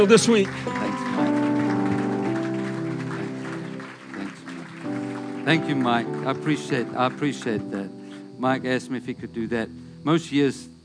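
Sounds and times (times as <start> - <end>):
speech: 0.0 - 0.9, 5.5 - 10.7
audience clapping: 0.0 - 7.8
sustained musical tones: 0.0 - 9.2.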